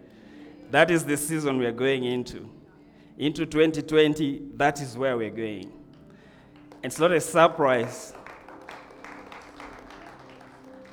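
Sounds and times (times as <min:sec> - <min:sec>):
speech: 0:00.7 - 0:02.6, 0:03.2 - 0:05.8, 0:06.8 - 0:08.2
audience applause: 0:06.5 - 0:10.9.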